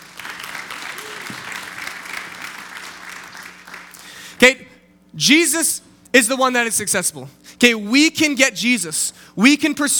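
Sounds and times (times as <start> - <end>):
audience applause: 0.0 - 4.1
speech: 4.4 - 9.9.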